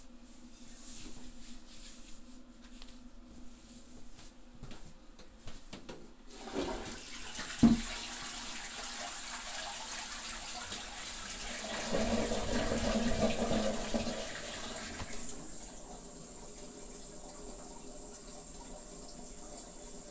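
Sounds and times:
person urinating after holding it in: 0:06.4 - 0:15.7.

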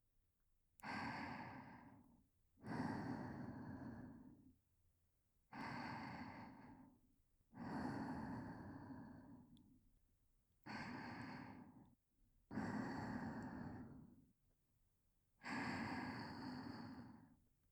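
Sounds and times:
whispered breathing: 0:00.8 - 0:04.5, 0:05.5 - 0:09.8, 0:10.7 - 0:14.3, 0:15.4 - 0:17.4.

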